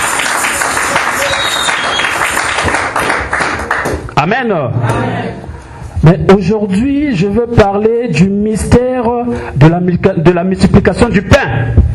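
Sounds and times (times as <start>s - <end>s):
church congregation clapping for Jesus Christ: 0.0s - 4.1s
speech: 4.2s - 11.9s.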